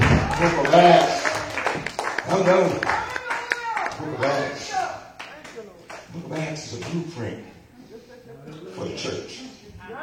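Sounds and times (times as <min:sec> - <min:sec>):
church congregation clapping in praise: 0:00.0 - 0:07.1
speech: 0:00.4 - 0:01.1, 0:02.5 - 0:03.0, 0:07.9 - 0:10.0.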